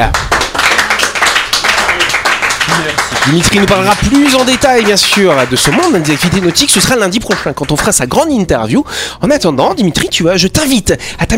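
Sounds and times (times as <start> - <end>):
audience applause: 0.0 - 7.5
speech: 3.2 - 11.3.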